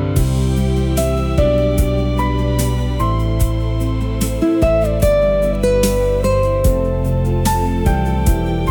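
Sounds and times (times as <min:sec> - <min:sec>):
music loop: 0:00.2 - 0:08.6.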